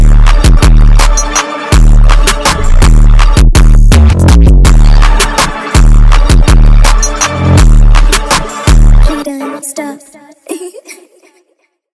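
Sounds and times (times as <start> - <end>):
hood trap dark jerk drill type beat: 0.0 - 9.2.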